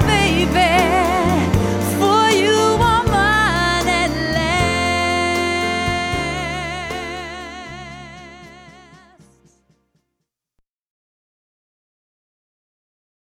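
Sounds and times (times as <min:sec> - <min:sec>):
variety band playing: 0:00.0 - 0:09.4.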